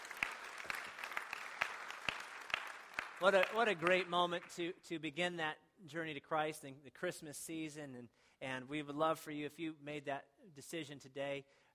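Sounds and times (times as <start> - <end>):
audience applauding: 0.0 - 4.6
speech: 3.2 - 11.6.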